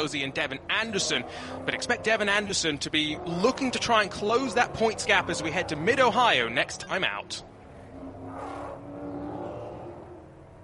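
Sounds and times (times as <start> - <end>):
speech: 0.0 - 7.5
race cars driving on a sighting lap: 0.0 - 10.6.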